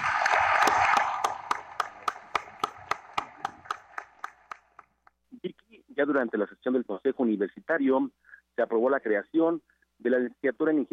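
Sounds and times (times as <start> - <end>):
audience applause: 0.0 - 5.0
rhythmic clapping: 0.0 - 5.2
speech: 6.0 - 10.9.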